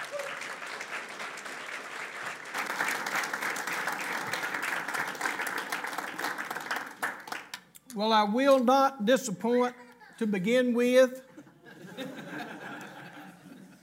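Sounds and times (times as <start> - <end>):
audience applause welcoming a preacher: 0.0 - 7.6
speech: 8.0 - 11.2
laughter: 11.3 - 13.8.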